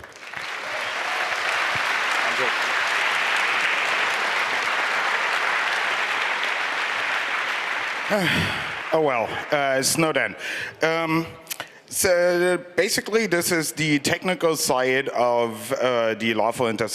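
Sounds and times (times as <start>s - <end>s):
audience applause: 0.0s - 10.6s
speech: 8.1s - 16.9s.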